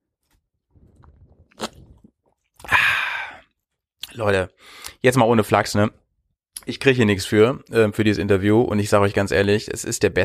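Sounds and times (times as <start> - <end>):
slurping and gulping an energy drink: 0.7 - 3.5
speech: 4.2 - 6.0, 6.6 - 10.2.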